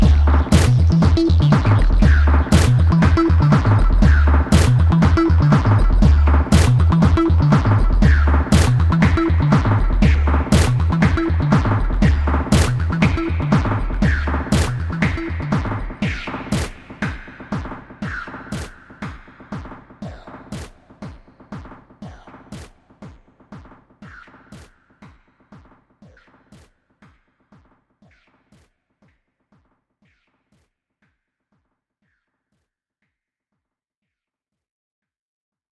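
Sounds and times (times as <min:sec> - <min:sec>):
bass: 0:00.0 - 0:18.8.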